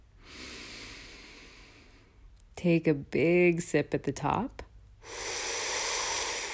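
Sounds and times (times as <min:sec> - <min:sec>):
deep breath in: 0:00.2 - 0:02.2, 0:05.0 - 0:06.5
speech: 0:02.6 - 0:04.6.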